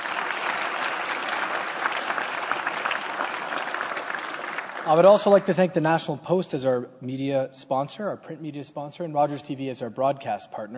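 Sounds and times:
audience round of applause: 0.0 - 5.4
speech: 4.9 - 10.7.

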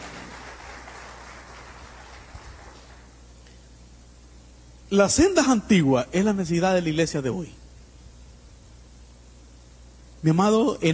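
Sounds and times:
audience applause: 0.0 - 3.1
speech: 4.9 - 7.6, 10.2 - 10.9.

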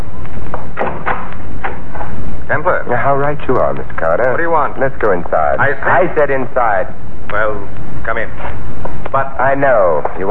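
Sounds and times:
door being opened: 0.5 - 2.2
speech: 2.8 - 10.2.

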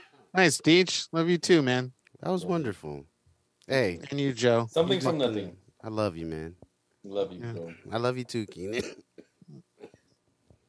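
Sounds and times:
speech: 0.3 - 3.1, 3.7 - 9.0
sarcastic cough: 8.7 - 10.0.

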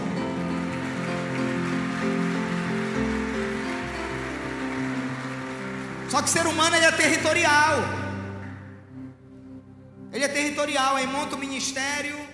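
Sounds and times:
audience applause: 0.0 - 7.9
speech: 6.1 - 8.0, 10.2 - 12.2.

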